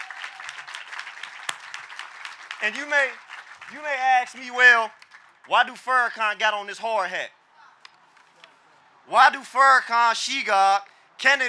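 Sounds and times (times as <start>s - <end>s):
sharp clap: 0.0s - 3.8s
audience at an outdoor rally applauding: 0.0s - 4.2s
speech: 2.6s - 7.4s, 9.1s - 11.4s.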